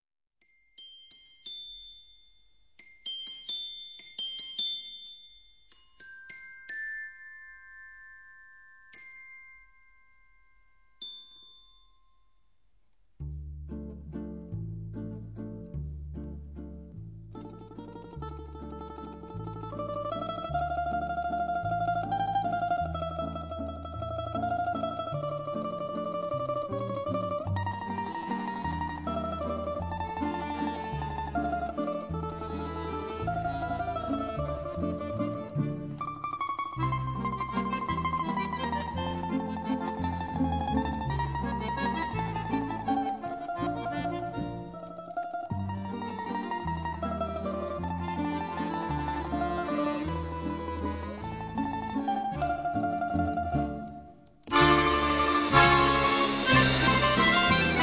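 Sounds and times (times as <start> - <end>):
waltz music: 13.5 - 57.8.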